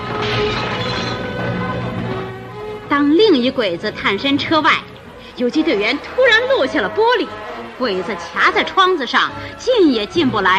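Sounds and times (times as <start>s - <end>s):
glass bottle smashing on a head: 0.2s - 1.3s
speech: 2.9s - 10.5s.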